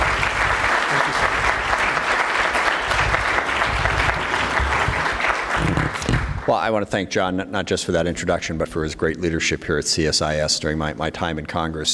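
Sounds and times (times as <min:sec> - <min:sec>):
audience applause: 0:00.0 - 0:06.6
speech: 0:06.5 - 0:11.9.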